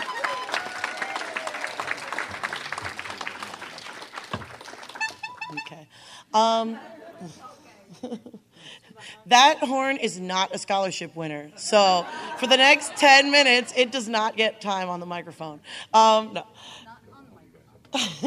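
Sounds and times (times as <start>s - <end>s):
audience applause: 0.0s - 5.6s
speech: 5.7s - 16.8s, 17.9s - 18.2s
laughter: 6.5s - 8.6s, 11.7s - 14.0s, 17.9s - 18.2s.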